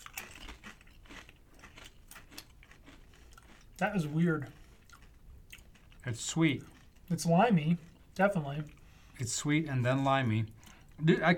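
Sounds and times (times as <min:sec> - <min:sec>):
crunching on potato chips: 0:00.0 - 0:07.1
speech: 0:03.8 - 0:04.6, 0:06.1 - 0:11.3.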